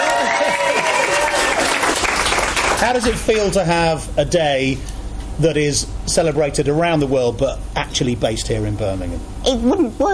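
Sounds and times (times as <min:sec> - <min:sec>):
applause marking a celebration day in Birmingham: 0:00.0 - 0:03.2
speech: 0:02.8 - 0:10.1.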